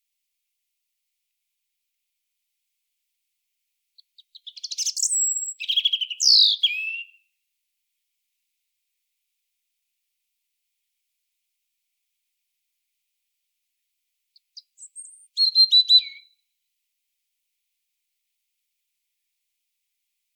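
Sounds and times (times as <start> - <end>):
European robin singing: 4.0 - 7.3, 14.4 - 16.4.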